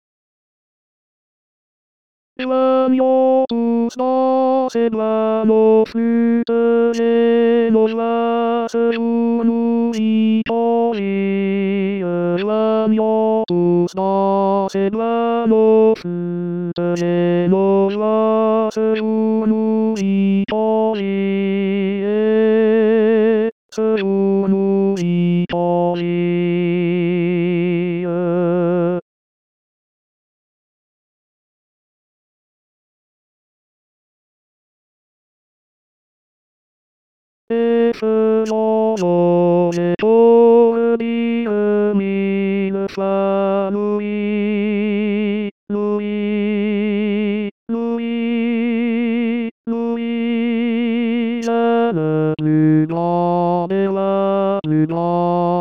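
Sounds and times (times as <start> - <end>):
tenor singing: 2.4 - 29.0, 37.5 - 46.8, 47.7 - 55.6.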